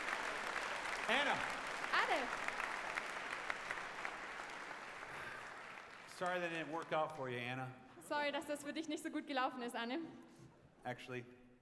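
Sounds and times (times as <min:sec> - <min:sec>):
crowd applause: 0:00.0 - 0:07.4
speech: 0:01.1 - 0:02.6, 0:06.2 - 0:11.4.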